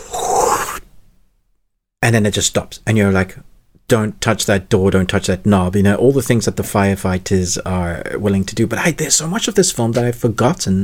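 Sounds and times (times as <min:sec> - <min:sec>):
voice imitating fire breathing sound effect: 0:00.0 - 0:00.9
speech: 0:02.0 - 0:10.8.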